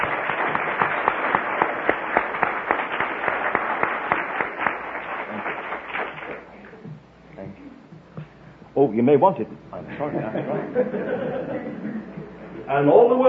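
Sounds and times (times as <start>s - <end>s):
clapping applause: 0.0s - 6.5s
speech: 8.8s - 12.1s, 12.7s - 13.2s
laughter: 9.8s - 12.7s.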